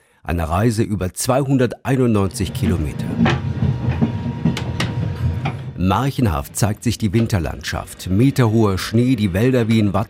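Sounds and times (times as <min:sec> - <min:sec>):
speech: 0:00.2 - 0:03.5, 0:05.8 - 0:10.0
Glacier Express wheels clacking over track joints: 0:02.2 - 0:10.0
Glacier Express train rumbling along rails: 0:02.3 - 0:09.5.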